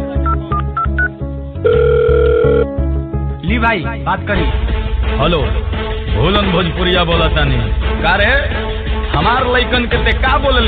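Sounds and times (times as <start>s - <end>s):
telephone keypad beeps: 0.3s - 2.7s
telephone ringing tone: 0.3s - 2.8s
speech: 3.6s - 10.6s.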